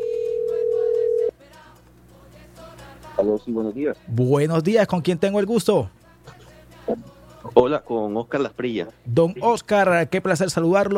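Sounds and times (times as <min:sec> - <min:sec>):
telephone line tone after a number is dialed: 0:00.0 - 0:01.3
speech: 0:03.2 - 0:06.0, 0:07.6 - 0:10.9.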